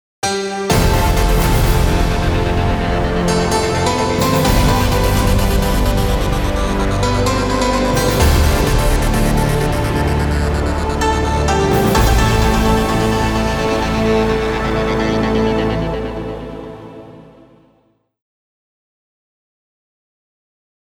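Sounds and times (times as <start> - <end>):
victory jingle: 0.7 - 17.3.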